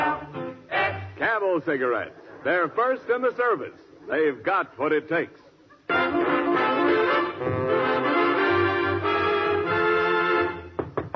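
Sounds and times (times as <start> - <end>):
speech: 1.4 - 6.2
full orchestral music: 5.9 - 10.7
knocking at a door: 10.8 - 11.1.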